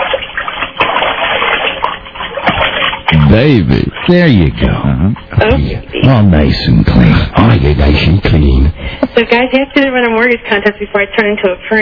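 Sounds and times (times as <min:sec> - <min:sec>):
water splashing and sloshing while someone being bathed is rinsed: 0:00.0 - 0:05.6
speech: 0:03.3 - 0:11.8.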